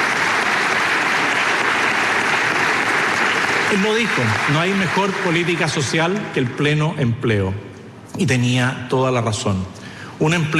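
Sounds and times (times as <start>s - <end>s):
audience applause: 0.0s - 6.9s
speech: 3.7s - 10.5s.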